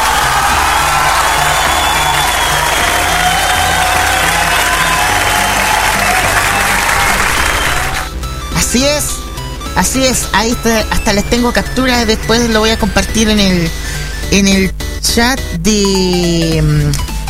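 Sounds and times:
audience applause: 0.0s - 8.1s
speech: 8.7s - 9.2s, 9.8s - 17.1s.

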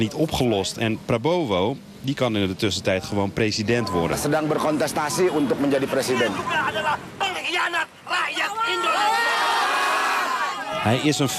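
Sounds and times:
speech: 0.0s - 9.3s, 10.8s - 11.3s
demonstrators shouting at a protest: 4.7s - 11.3s.

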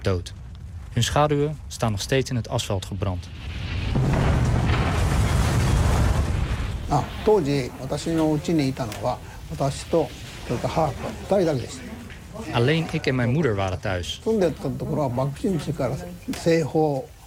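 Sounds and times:
speech: 0.0s - 0.4s, 1.0s - 4.2s, 6.9s - 17.2s
atomic bomb dropped on a city exploding: 2.9s - 13.1s.

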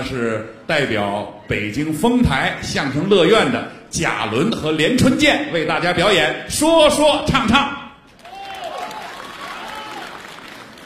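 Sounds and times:
speech: 0.0s - 7.8s
audience applause at a crossed-talk comedy show: 8.1s - 10.8s.

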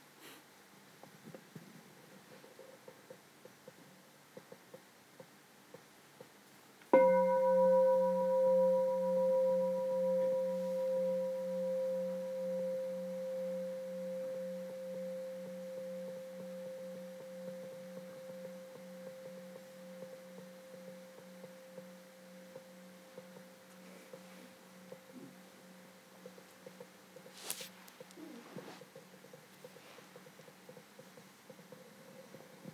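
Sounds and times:
meditation bell ringing: 6.9s - 27.5s.

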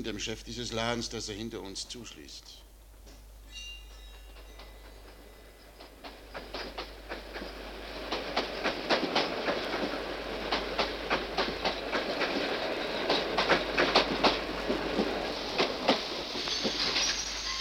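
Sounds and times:
speech: 0.0s - 2.7s
train running on rails: 3.5s - 17.5s.

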